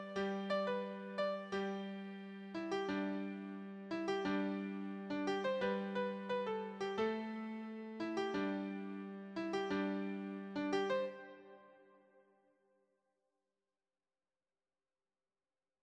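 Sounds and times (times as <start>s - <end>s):
beginner piano solo: 0.0s - 11.5s.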